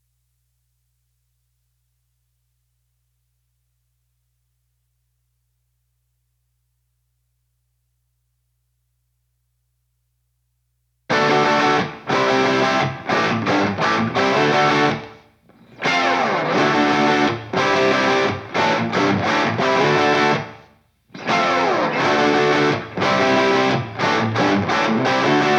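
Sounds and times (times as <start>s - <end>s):
rhythm guitar: 11.1s - 25.5s.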